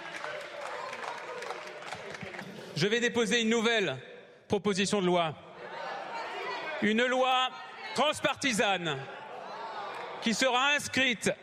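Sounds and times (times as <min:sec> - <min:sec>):
applause in a large parliament chamber: 0:00.0 - 0:02.8
speech: 0:02.8 - 0:05.4, 0:06.8 - 0:09.2, 0:10.2 - 0:11.4
murmur of voices: 0:05.5 - 0:10.3.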